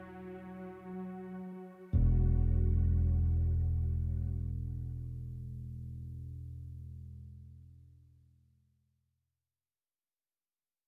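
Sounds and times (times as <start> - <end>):
suspenseful strings: 0.0 - 4.5
suspenseful bass harp: 1.9 - 8.0.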